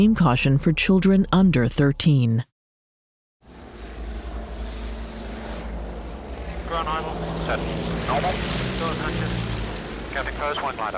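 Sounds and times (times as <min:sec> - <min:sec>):
speech: 0:00.0 - 0:02.5, 0:10.2 - 0:10.9
propeller plane roaring overhead: 0:03.4 - 0:10.9.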